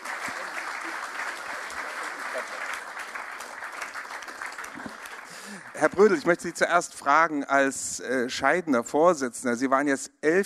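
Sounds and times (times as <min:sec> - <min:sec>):
audience applause: 0:00.0 - 0:06.6
speech: 0:05.8 - 0:10.4.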